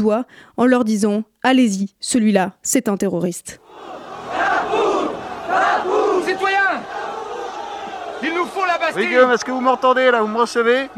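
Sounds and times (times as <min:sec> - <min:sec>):
speech: 0:00.0 - 0:04.4, 0:08.7 - 0:10.9
crowd shouting at Bastille storming reenactment: 0:03.6 - 0:10.9.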